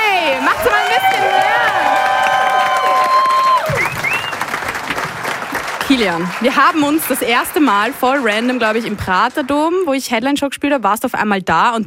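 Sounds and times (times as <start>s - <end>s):
audience applause and cheering: 0.0s - 10.0s
short rising whistles: 3.3s - 4.5s
speech: 6.0s - 11.8s.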